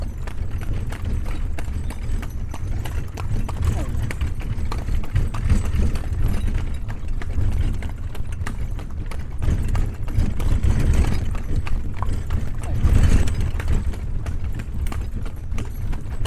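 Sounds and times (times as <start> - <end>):
horse cart ride in Bagan, Burma: 0.0 - 16.2.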